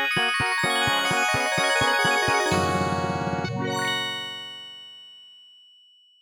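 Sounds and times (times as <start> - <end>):
fanfare on Roland: 0.2 - 4.6.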